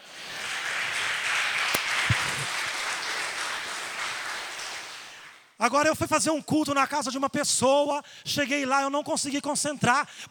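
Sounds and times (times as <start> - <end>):
audience applauding: 0.0 - 5.5
speech: 5.6 - 10.2.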